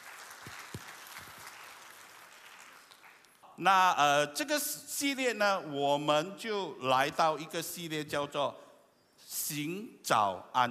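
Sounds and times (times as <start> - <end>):
crowd, audience applauding: 0.0 - 3.4
speech: 3.6 - 8.6, 9.5 - 10.6.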